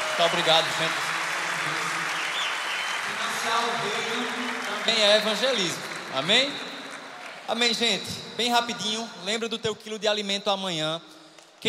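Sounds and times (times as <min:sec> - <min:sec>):
audience applause: 0:00.0 - 0:08.1
speech: 0:00.2 - 0:01.9, 0:03.1 - 0:06.7, 0:07.5 - 0:11.6.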